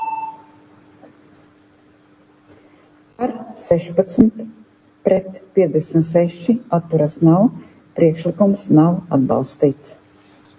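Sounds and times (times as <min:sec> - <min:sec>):
parliamentary voting signal electronic beep: 0:00.0 - 0:00.6
speech: 0:03.2 - 0:10.0.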